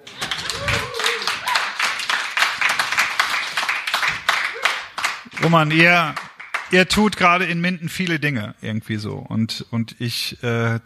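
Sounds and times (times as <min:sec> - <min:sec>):
audience applause: 0:00.0 - 0:06.9
speech: 0:05.4 - 0:10.8.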